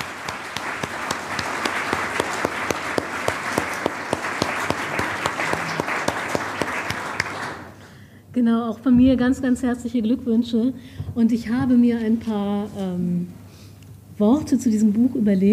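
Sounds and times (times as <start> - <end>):
audience applause: 0.0 - 7.8
speech: 8.4 - 13.4, 14.2 - 15.5.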